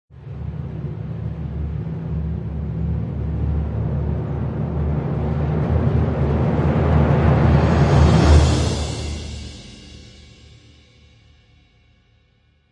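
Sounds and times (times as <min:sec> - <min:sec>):
timpani crescendo: 0:00.1 - 0:10.9.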